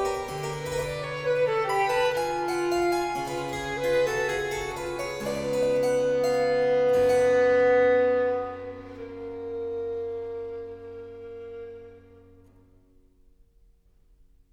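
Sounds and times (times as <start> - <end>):
harpsichord: 0.0 - 9.0
violin: 0.0 - 12.7.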